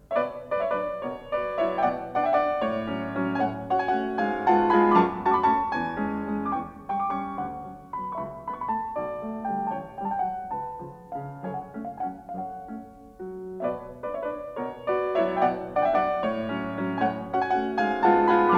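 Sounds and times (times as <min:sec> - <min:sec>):
piano waltz in B minor for four hands: 0:00.0 - 0:18.5.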